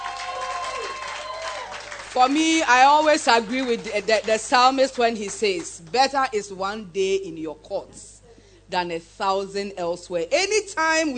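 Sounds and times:
audience clapping: 0:00.0 - 0:06.0
speech: 0:02.2 - 0:08.1, 0:08.7 - 0:11.1.

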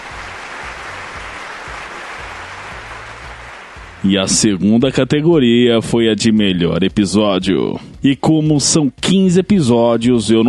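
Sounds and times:
applause: 0:00.0 - 0:04.1
speech: 0:04.0 - 0:10.4.

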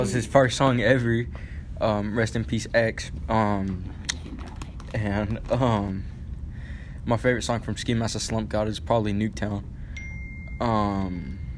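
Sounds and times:
speech: 0:00.0 - 0:04.0, 0:04.9 - 0:06.1, 0:07.1 - 0:09.7, 0:10.6 - 0:11.4
phone alert high beep: 0:10.0 - 0:11.5.

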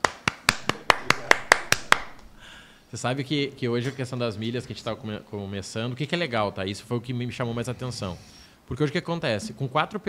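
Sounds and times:
hand clapping: 0:00.0 - 0:02.3
speech: 0:02.9 - 0:10.0.

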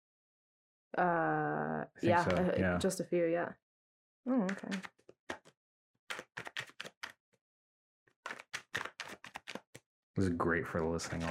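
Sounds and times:
speech: 0:00.9 - 0:03.6, 0:04.2 - 0:05.0, 0:10.2 - 0:11.2
shuffling playing cards: 0:02.1 - 0:02.5, 0:04.5 - 0:05.5, 0:06.1 - 0:07.2, 0:08.3 - 0:09.7, 0:10.8 - 0:11.2.

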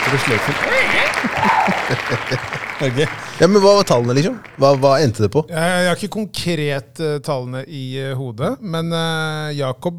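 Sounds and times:
applause: 0:00.0 - 0:05.4
laughter: 0:00.0 - 0:06.3
speech: 0:00.1 - 0:09.9.

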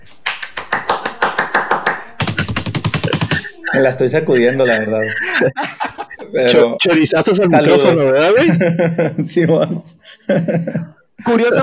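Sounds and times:
hand clapping: 0:00.0 - 0:03.5
laughter: 0:00.0 - 0:11.6
speech: 0:03.8 - 0:11.6.

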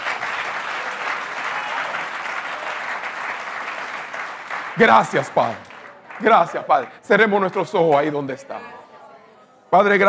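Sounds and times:
audience applause: 0:00.0 - 0:07.0
speech: 0:04.8 - 0:08.8, 0:09.7 - 0:10.0.

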